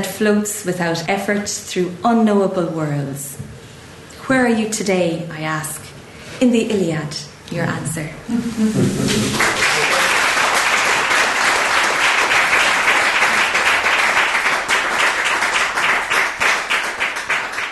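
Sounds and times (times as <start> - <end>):
speech: 0.0 - 3.6, 4.3 - 9.6
audience applause after a poetry reading: 9.0 - 17.7.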